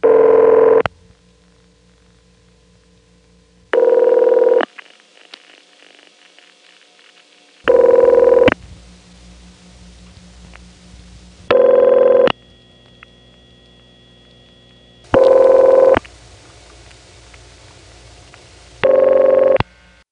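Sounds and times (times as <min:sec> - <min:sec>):
Bell System PBX telephone rings: 0:00.0 - 0:00.8, 0:03.8 - 0:04.6, 0:07.7 - 0:08.6, 0:11.5 - 0:12.3, 0:15.0 - 0:16.0, 0:18.8 - 0:19.6.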